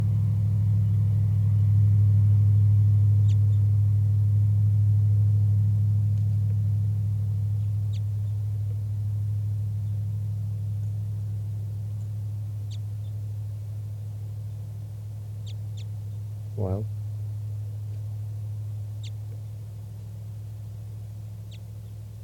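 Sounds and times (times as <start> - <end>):
steady loud low rumble: 0.0 - 22.2
very soft wild bird flight calls: 3.1 - 3.7, 7.5 - 18.1, 18.8 - 19.6, 21.2 - 22.2.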